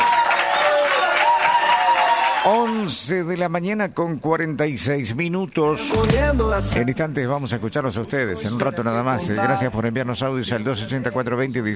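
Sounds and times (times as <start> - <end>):
applause: 0.0 - 3.0
speech: 2.4 - 11.7.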